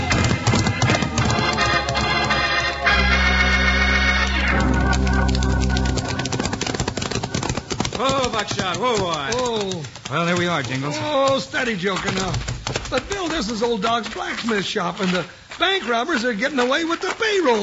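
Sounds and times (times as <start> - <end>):
horses galloping: 0.0 - 17.6
sustained tonal sounds: 1.2 - 7.6
speech: 8.4 - 17.6.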